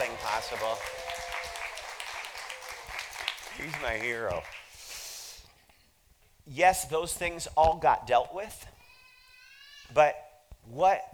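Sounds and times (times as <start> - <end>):
audience applause and cheering: 0.0 - 4.7
speech: 0.4 - 1.2, 3.6 - 4.6, 6.5 - 8.7, 9.9 - 11.1.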